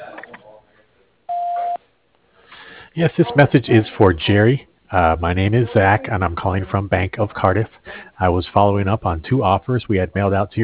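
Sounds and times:
voicemail beep: 0:01.3 - 0:01.8
recorded voicemail greeting voice: 0:02.9 - 0:10.6
speech: 0:03.0 - 0:10.6.

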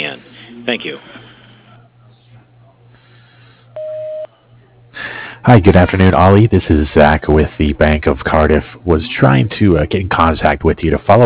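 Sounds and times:
speech: 0:00.7 - 0:01.2, 0:05.4 - 0:11.2
faint phone-line hiss: 0:03.8 - 0:04.3
voicemail beep tone: 0:03.8 - 0:04.3.

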